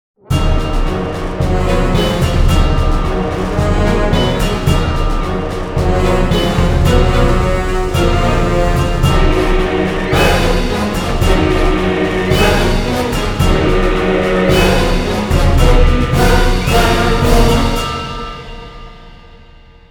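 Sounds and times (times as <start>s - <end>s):
important battle stinger: 0.3s - 19.5s.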